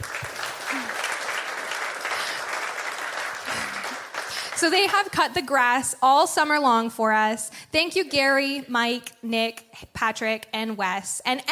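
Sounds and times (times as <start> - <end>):
crowd clapping: 0.0 - 5.2
speech: 4.6 - 11.4.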